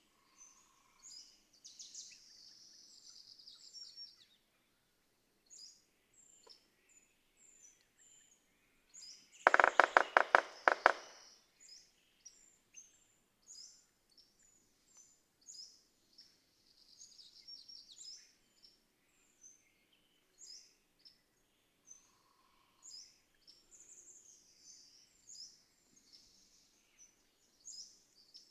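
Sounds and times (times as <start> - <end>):
Red-breasted Sapsucker calling: 9.5 - 11.2.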